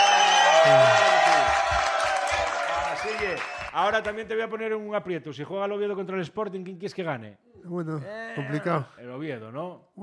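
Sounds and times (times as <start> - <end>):
studio audience cheering and whooping on a Spanish television show: 0.0 - 4.2
speech: 0.6 - 1.0, 3.3 - 10.0.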